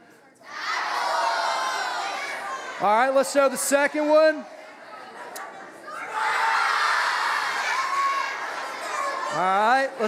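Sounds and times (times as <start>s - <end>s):
audience yelling out answers: 0.4s - 2.9s, 5.8s - 9.4s
speech: 2.8s - 4.6s, 9.4s - 10.0s.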